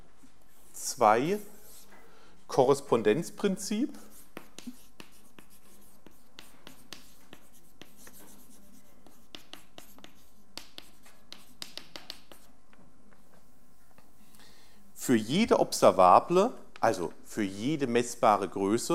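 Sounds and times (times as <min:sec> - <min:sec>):
speech: 0:01.0 - 0:01.5, 0:02.6 - 0:04.8, 0:15.1 - 0:18.9
pen scratching out a handwritten heading: 0:04.1 - 0:12.5.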